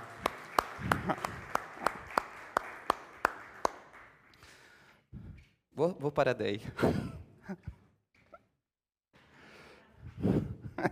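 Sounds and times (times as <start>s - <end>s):
audience applause: 0.0s - 4.4s
speech: 1.1s - 1.3s, 5.8s - 7.7s.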